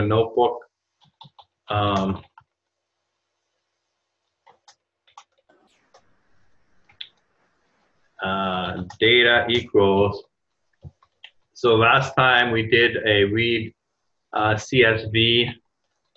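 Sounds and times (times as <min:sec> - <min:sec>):
speech: 0:00.0 - 0:00.7, 0:01.7 - 0:02.3, 0:08.2 - 0:10.3, 0:11.6 - 0:15.6
typing on a computer keyboard: 0:01.0 - 0:02.6, 0:04.4 - 0:06.0, 0:15.8 - 0:16.1.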